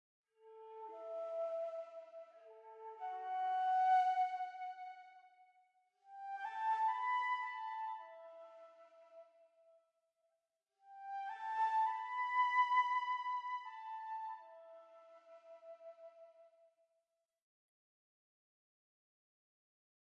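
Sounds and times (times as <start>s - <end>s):
flute: 0.4s - 9.7s, 10.8s - 16.6s.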